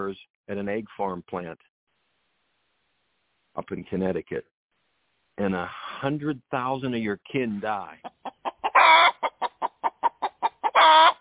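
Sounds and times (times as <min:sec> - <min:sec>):
speech: 0:00.0 - 0:01.7, 0:03.6 - 0:04.5, 0:05.4 - 0:08.4
hen clucking: 0:07.9 - 0:11.1.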